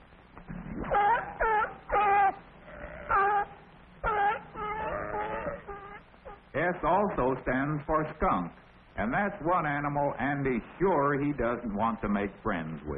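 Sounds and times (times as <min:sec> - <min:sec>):
sea lion barking: 0:00.5 - 0:06.6
speech: 0:06.8 - 0:12.9.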